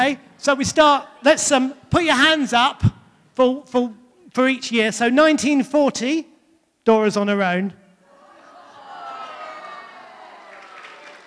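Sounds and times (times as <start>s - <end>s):
speech: 0.0s - 7.8s
round of applause from audience: 9.4s - 11.2s.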